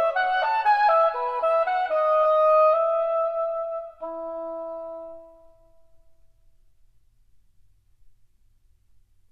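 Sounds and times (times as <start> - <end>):
solo oboe suite: 0.0 - 6.2.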